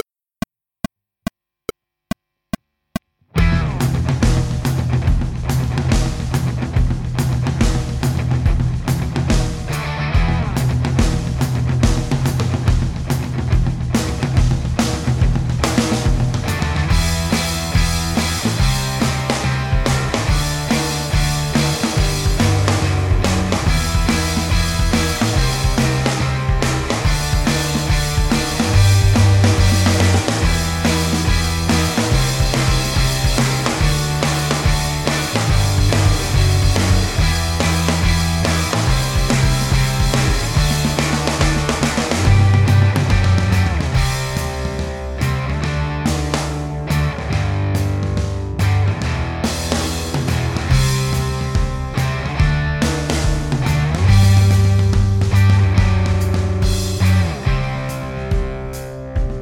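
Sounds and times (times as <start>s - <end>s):
drums: 3.3s - 59.4s.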